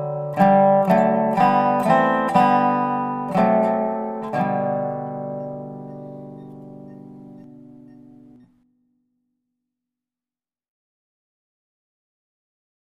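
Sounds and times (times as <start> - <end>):
dobro: 0.0 - 9.0.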